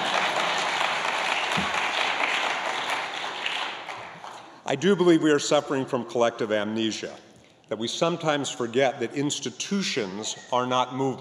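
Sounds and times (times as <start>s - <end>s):
audience applause: 0.0s - 4.5s
speech: 4.7s - 11.2s.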